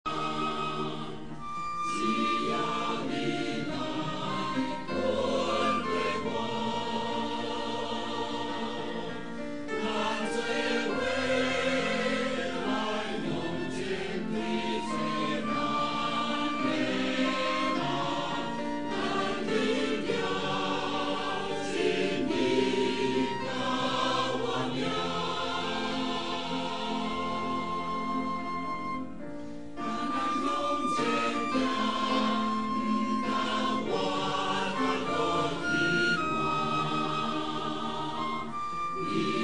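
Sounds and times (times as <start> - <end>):
choir singing: 0.0 - 39.4.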